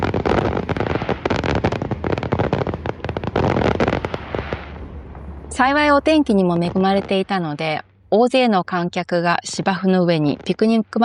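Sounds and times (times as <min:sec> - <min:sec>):
fireworks bursting and crackling over a lake: 0:00.0 - 0:04.9, 0:05.5 - 0:07.8
speech: 0:05.6 - 0:11.0.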